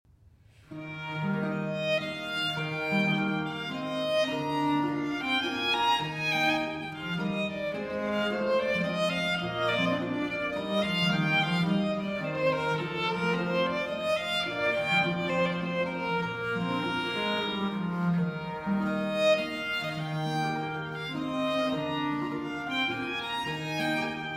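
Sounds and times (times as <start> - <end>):
violin with basso continuo playing a slow aria: 0.6 - 24.3.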